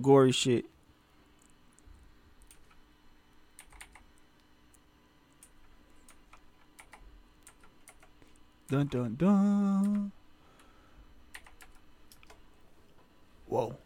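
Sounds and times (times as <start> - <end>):
speech: 0.0 - 0.7, 8.7 - 10.2, 13.5 - 13.8
low hum: 0.6 - 13.8
computer keyboard typing: 3.6 - 4.2, 5.4 - 8.8, 9.8 - 10.1, 11.3 - 12.4.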